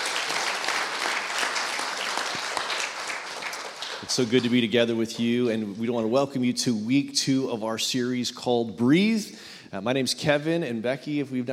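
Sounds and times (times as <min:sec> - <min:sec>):
crowd applause: 0:00.0 - 0:04.7
speech: 0:04.0 - 0:11.5.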